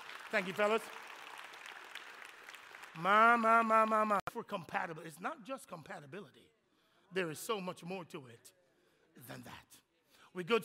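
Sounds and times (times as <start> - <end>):
audience applause: 0.0 - 4.2
speech: 0.3 - 1.0, 3.0 - 8.6, 9.2 - 10.6.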